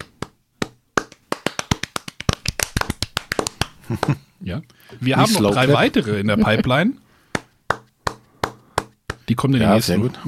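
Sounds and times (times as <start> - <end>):
hand claps: 0.0 - 4.2, 7.3 - 9.3
laughter: 3.8 - 4.2, 5.2 - 6.9
speech: 3.9 - 7.0, 9.3 - 10.2.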